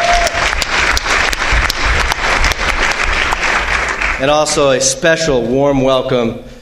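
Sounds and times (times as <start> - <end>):
audience applause in a packed town hall auditorium: 0.0 - 4.6
speech: 4.2 - 6.5.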